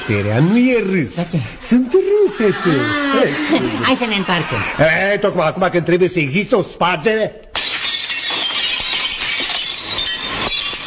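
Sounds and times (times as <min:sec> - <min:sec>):
speech: 0:00.1 - 0:07.4
laughter: 0:01.9 - 0:05.4
thermos flask breaking: 0:07.6 - 0:10.8.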